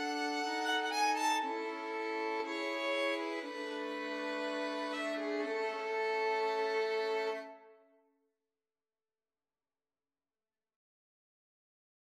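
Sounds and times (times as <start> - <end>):
romantic violin trio: 0.0 - 7.7.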